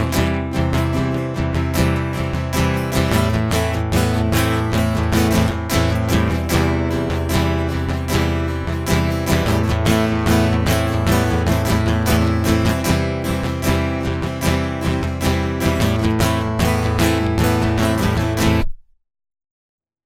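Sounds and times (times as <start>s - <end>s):
guitar loop: 0.0s - 18.8s.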